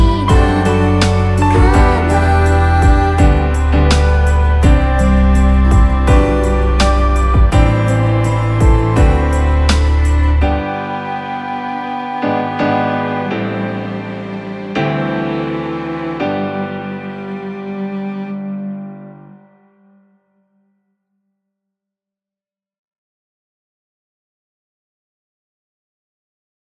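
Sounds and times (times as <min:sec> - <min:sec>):
soothing lullaby karaoke ballad: 0:00.0 - 0:17.2.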